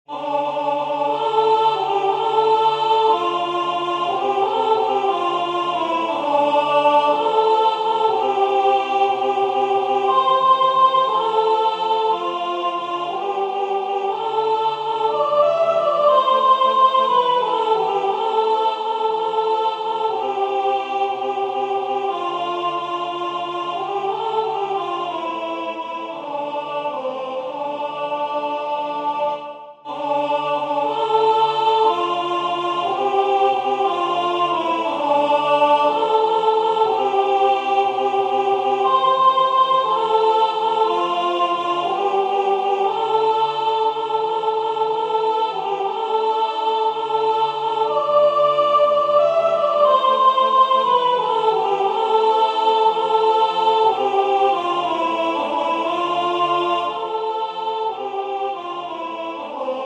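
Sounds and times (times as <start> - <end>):
soprano singing: 0.1 - 59.8.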